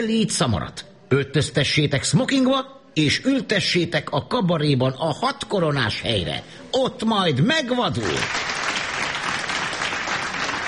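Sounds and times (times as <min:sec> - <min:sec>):
speech: 0:00.0 - 0:08.5
cabaret audience applauding: 0:08.1 - 0:10.6.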